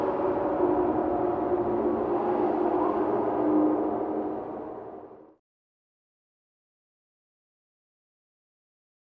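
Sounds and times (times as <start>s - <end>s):
horror sci-fi background: 0.0s - 5.4s.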